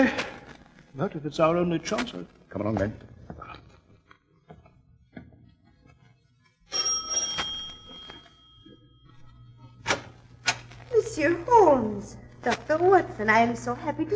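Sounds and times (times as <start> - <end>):
speech: 0.0 - 0.3, 1.0 - 3.4, 11.2 - 14.1
doorbell ringing: 6.7 - 9.4.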